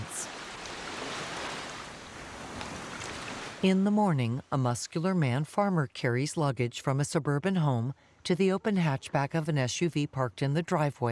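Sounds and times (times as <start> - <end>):
surf gently lapping a beach at dawn: 0.0 - 5.7
speech: 3.6 - 11.0.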